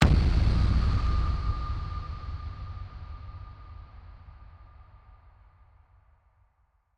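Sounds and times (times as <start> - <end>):
deep cinematic impact: 0.0 - 5.3.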